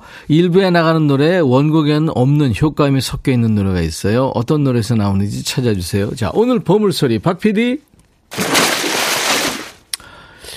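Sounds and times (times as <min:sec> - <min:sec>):
speech: 0:00.3 - 0:08.6
axe splashing into a pond: 0:08.3 - 0:09.9.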